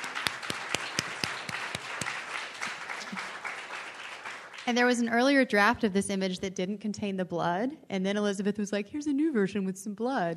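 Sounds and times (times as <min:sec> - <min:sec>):
audience clapping at a reading: 0:00.0 - 0:05.1
speech: 0:04.7 - 0:10.3.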